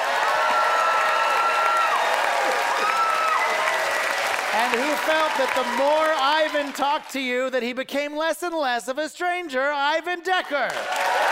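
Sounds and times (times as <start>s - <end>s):
audience applause: 0.0s - 7.2s, 10.7s - 11.2s
speech: 4.6s - 11.2s.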